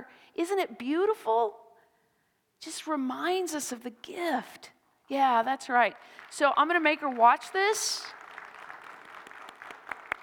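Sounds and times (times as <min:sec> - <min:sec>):
speech: 0:00.1 - 0:01.6, 0:02.6 - 0:08.2
audience applause: 0:08.1 - 0:10.2.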